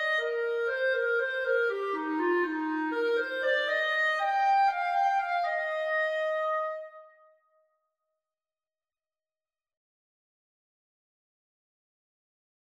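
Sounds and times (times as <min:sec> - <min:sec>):
clarinet and saxophone duet: 0:00.0 - 0:06.9.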